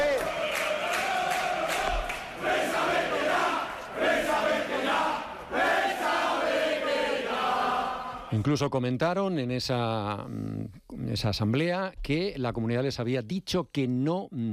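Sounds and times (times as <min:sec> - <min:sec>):
club members chanting against the president: 0:00.0 - 0:08.4
speech: 0:08.4 - 0:14.5.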